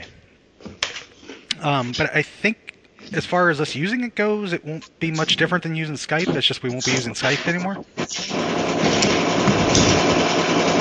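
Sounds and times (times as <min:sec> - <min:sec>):
speech: 0:01.6 - 0:10.6
fan with a failing bearing rattling: 0:04.9 - 0:10.8.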